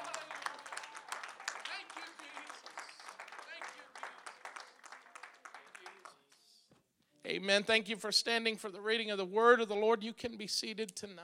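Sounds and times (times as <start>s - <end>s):
audience hand clapping: 0.0s - 6.5s
speech: 7.3s - 11.2s.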